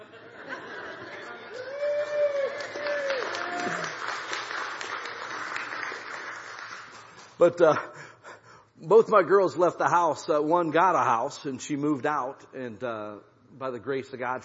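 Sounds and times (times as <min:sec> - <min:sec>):
laughter: 0:00.0 - 0:01.6
people clapping: 0:01.1 - 0:07.6
speech: 0:07.4 - 0:08.0, 0:08.8 - 0:14.4.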